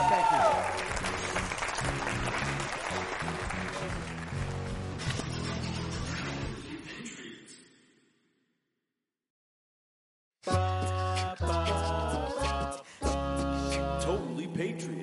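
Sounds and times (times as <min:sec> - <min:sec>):
audience applauding and cheering for a guest on a sports talk set: 0:00.0 - 0:05.0
music: 0:00.0 - 0:08.0, 0:10.4 - 0:15.0.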